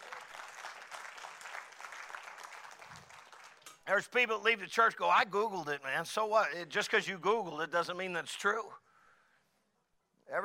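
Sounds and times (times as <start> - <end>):
audience applause: 0.0 - 3.6
speech: 3.9 - 8.8.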